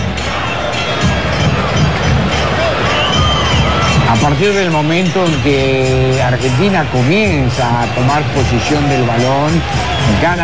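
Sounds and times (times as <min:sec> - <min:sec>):
stadium crowd applauding in Kansas: 0:00.0 - 0:10.4
speech: 0:04.2 - 0:10.4.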